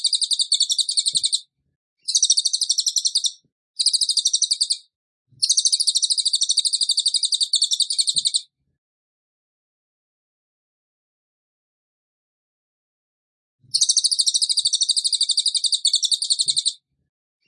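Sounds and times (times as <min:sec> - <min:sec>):
bird trilling: 0:00.0 - 0:01.4, 0:02.1 - 0:04.8, 0:05.4 - 0:08.4, 0:13.7 - 0:16.8.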